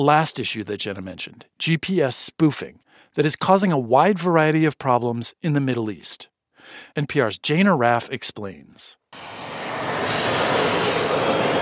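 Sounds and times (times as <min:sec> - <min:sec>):
speech: 0:00.0 - 0:09.4
aircraft engines roaring near Beirut's international airport: 0:09.2 - 0:11.6.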